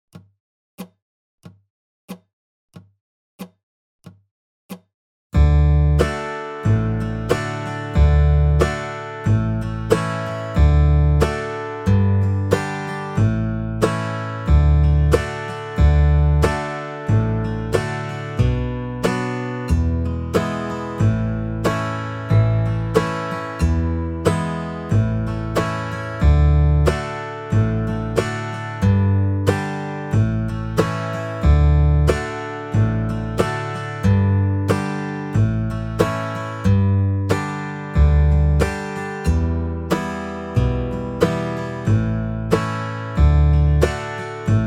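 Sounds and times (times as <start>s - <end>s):
backing track: 5.4s - 44.6s.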